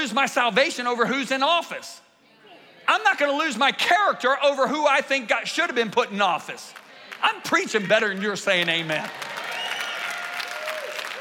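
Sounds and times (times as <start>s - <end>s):
speech: 0.0s - 2.1s, 2.9s - 9.3s
audience applause: 8.1s - 11.2s.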